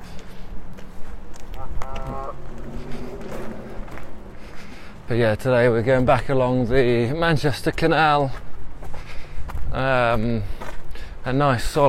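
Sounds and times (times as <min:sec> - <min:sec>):
scuff of walking footsteps: 0:00.0 - 0:06.3, 0:07.6 - 0:11.0
steady outdoor rumble: 0:00.0 - 0:06.8
geese honking: 0:01.4 - 0:05.0
speech: 0:05.1 - 0:08.4, 0:09.7 - 0:10.5, 0:11.2 - 0:11.8.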